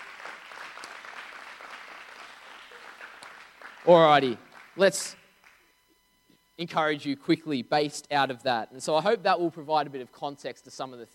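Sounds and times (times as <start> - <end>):
church congregation applause: 0.0 - 4.8
speech: 3.8 - 5.2, 6.6 - 11.1.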